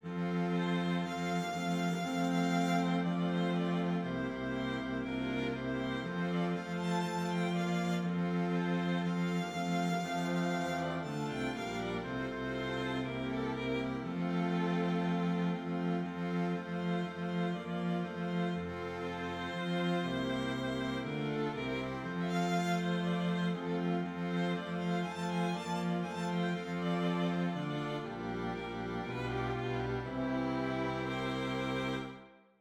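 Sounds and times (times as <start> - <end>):
string instrument: 0.0 - 32.6.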